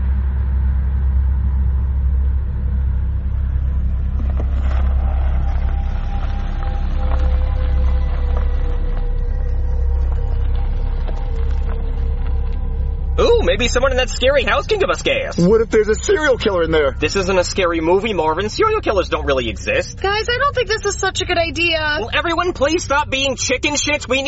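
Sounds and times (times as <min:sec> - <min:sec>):
Hyundai Sonata engine idling on a dirt road in Texas: 0:00.0 - 0:24.2
speech: 0:13.6 - 0:24.2.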